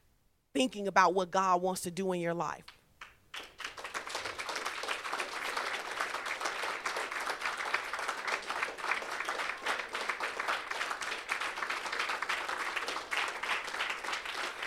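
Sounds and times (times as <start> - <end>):
speech: 0.6 - 2.8
audience clapping: 3.0 - 14.6.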